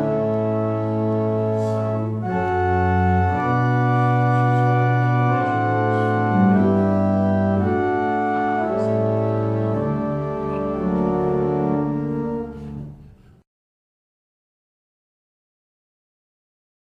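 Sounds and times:
barrel organs: 0.0s - 13.0s.

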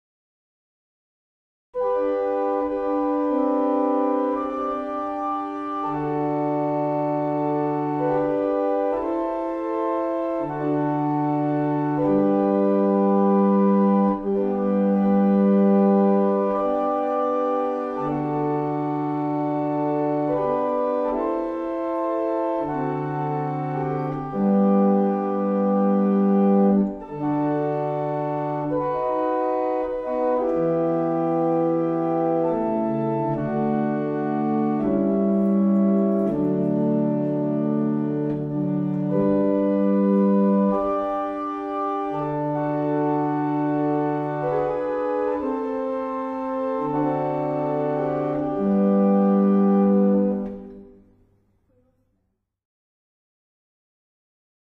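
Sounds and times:
German hymn on barrel organ: 1.8s - 51.0s.

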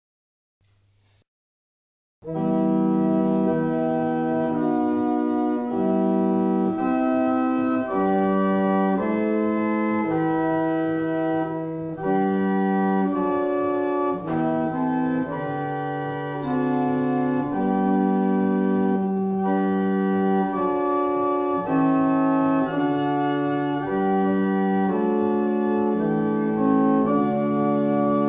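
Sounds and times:
barrel organs: 2.2s - 28.2s.

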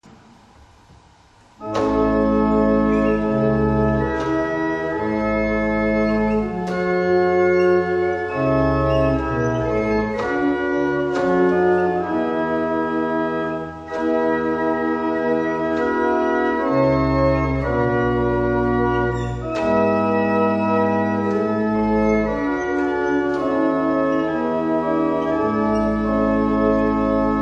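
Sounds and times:
barrel organ playing a double chant: 1.6s - 27.3s.

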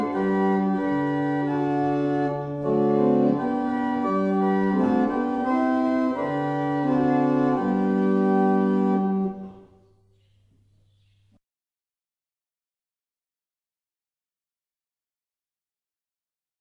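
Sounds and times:
barrel organ: 0.0s - 11.4s.

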